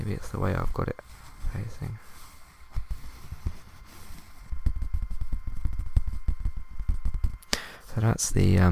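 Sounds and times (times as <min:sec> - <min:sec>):
speech: 0:00.1 - 0:02.2, 0:08.0 - 0:08.7
scratching a piece of paper: 0:01.0 - 0:07.3.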